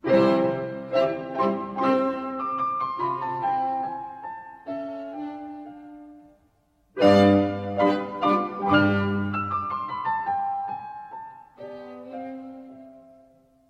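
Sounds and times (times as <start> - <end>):
piano trio playing an allegro in C: 0.0 - 13.6.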